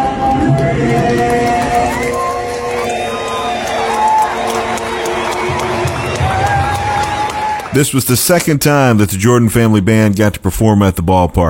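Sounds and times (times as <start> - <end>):
scattered clapping: 0.2 - 8.5
ballpark crowd cheering and whooping: 0.4 - 7.8
speech: 7.8 - 11.4.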